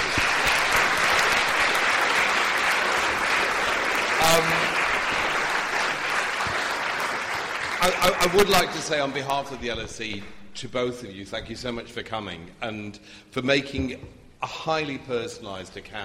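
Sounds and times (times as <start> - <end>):
crowd applause: 0.0 - 9.6
speech: 7.8 - 16.0.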